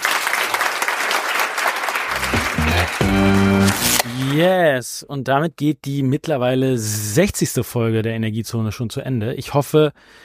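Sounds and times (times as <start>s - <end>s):
audience applauding the hosts at a live event: 0.0s - 4.4s
sustained musical notes: 2.1s - 4.3s
speech: 3.0s - 10.2s.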